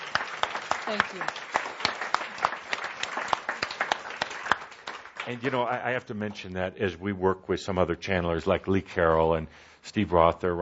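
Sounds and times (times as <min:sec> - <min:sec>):
audience applause: 0:00.0 - 0:06.0
speech: 0:00.9 - 0:01.5, 0:05.3 - 0:10.6.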